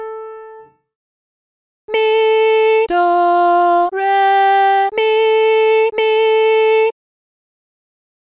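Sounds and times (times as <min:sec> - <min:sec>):
person singing medium solfa training exercise: 0:01.9 - 0:07.0.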